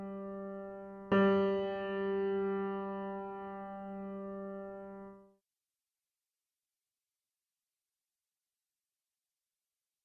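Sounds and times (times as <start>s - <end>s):
piano note G: 0.0s - 5.2s.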